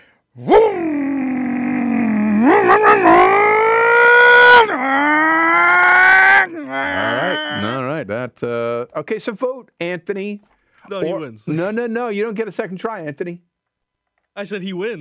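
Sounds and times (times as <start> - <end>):
speech: 0.4 - 1.0, 8.4 - 13.5, 14.4 - 14.9
voice imitating muscle car engine: 0.4 - 7.8.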